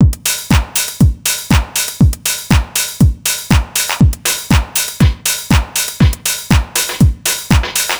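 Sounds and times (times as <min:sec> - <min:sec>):
dance drum loop: 0:00.0 - 0:07.9.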